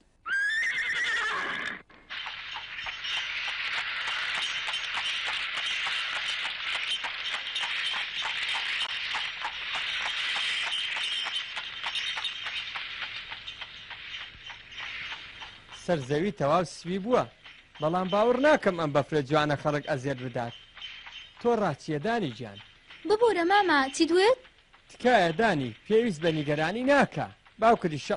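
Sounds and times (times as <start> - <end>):
horse whinnying in a Kurdish cartoon episode: 0.2 - 1.9
horse hooves clip-clopping in a Kurdish cartoon episode: 0.4 - 28.1
speech: 15.9 - 20.6, 21.4 - 28.1.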